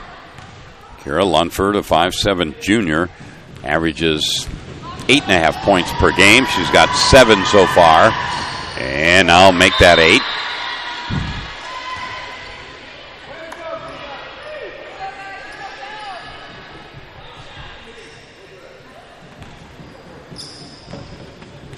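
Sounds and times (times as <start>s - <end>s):
speech: 1.0s - 10.5s
basketball dribbled right-handed at the free throw line: 19.3s - 21.7s.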